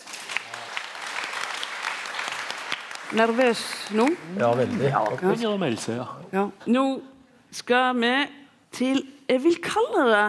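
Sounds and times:
applause: 0:00.0 - 0:05.4
speech: 0:03.1 - 0:10.2.

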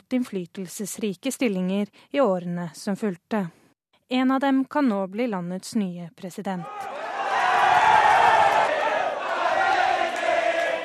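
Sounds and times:
speech: 0:00.1 - 0:06.9
crowd cheering for a candidate: 0:06.6 - 0:10.8.

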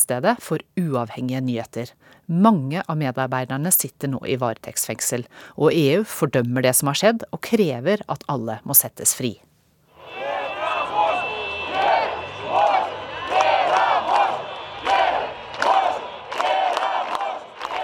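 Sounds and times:
speech: 0:00.0 - 0:09.5
protesters chanting in a crowd: 0:10.0 - 0:17.8.

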